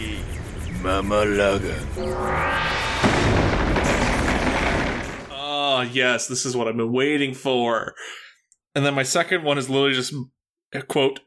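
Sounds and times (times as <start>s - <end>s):
speech: 0.8s - 3.4s, 5.8s - 8.2s, 8.8s - 11.2s
lightning storm thunder effect: 1.6s - 5.9s.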